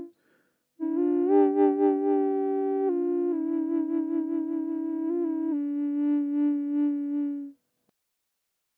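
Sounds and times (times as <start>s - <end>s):
Native American drone flute in Aeolian D without effects, fine woods: 0.8s - 7.5s.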